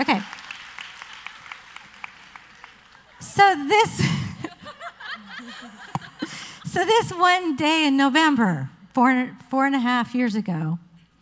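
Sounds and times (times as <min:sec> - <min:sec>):
speech: 0:00.0 - 0:00.3, 0:03.4 - 0:04.1, 0:05.4 - 0:06.0, 0:06.8 - 0:10.8
audience applause at a live stand-up comedy show: 0:00.0 - 0:03.3
stand-up comedy audience laughter and cheering: 0:01.0 - 0:07.2.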